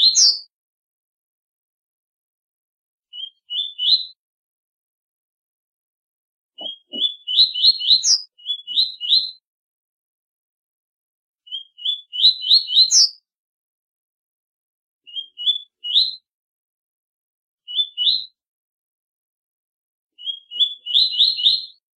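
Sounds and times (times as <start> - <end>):
double-collared seedeater singing rising whistled phrases: 0.0 - 0.5, 3.1 - 4.2, 6.6 - 9.4, 11.5 - 13.2, 15.1 - 16.2, 17.7 - 18.4, 20.2 - 21.8.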